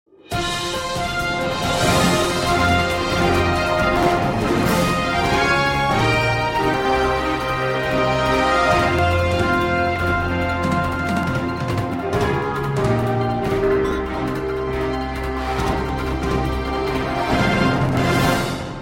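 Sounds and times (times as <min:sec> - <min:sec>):
music: 0:00.1 - 0:18.8.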